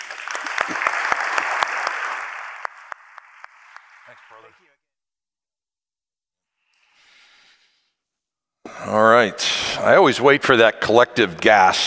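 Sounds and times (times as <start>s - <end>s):
crowd applause welcoming a speaker: 0.0s - 4.6s
speech: 4.4s - 4.9s, 8.9s - 11.8s.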